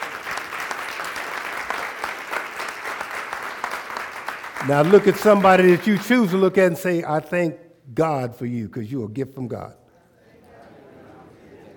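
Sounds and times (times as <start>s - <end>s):
audience applause: 0.0s - 6.6s
speech: 4.6s - 9.8s.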